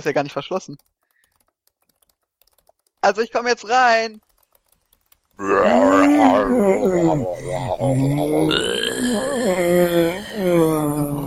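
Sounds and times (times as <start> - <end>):
speech: 0.0 - 1.0, 3.0 - 4.3, 5.4 - 11.2
human voice zombie-like groaning: 5.4 - 11.2.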